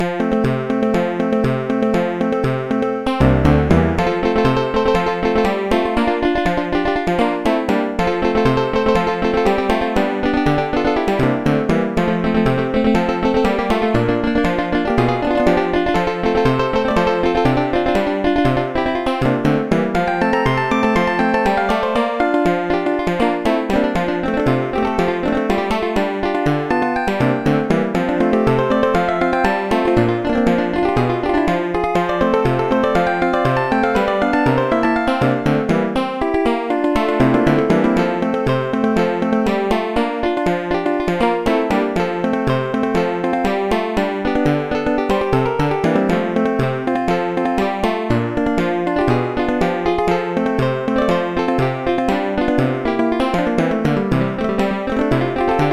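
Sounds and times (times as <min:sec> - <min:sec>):
country music: 0:00.0 - 0:55.7.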